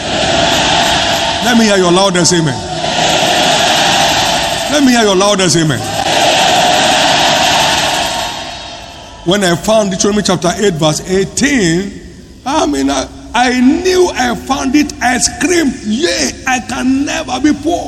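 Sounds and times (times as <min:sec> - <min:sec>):
audience shouting amen: 0:00.0 - 0:09.9
speech: 0:01.4 - 0:02.8, 0:04.7 - 0:05.9, 0:09.2 - 0:17.8.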